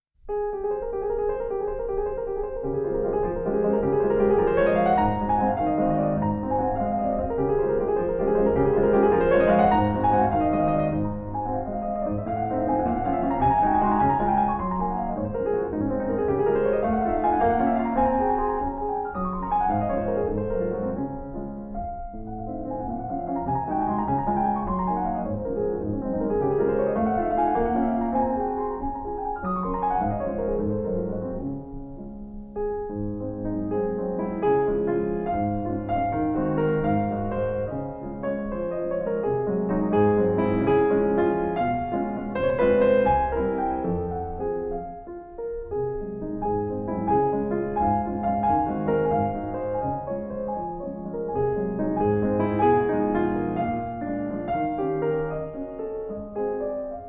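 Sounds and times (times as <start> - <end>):
piano waltz: 0.0 - 57.0.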